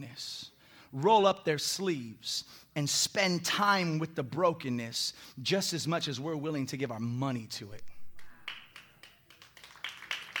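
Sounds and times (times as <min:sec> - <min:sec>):
speech: 0:00.0 - 0:07.9
scattered hand claps: 0:08.1 - 0:10.3.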